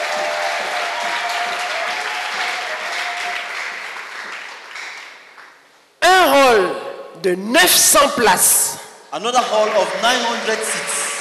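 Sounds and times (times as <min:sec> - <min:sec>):
church congregation applause during a thanksgiving service: 0:00.0 - 0:05.6, 0:09.4 - 0:11.1
speech: 0:07.2 - 0:11.0.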